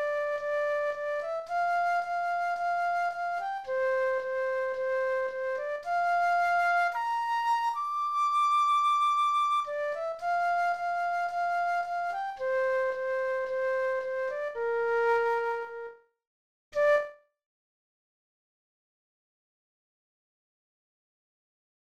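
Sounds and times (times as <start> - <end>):
flute: 0.0 - 16.1, 16.8 - 17.2.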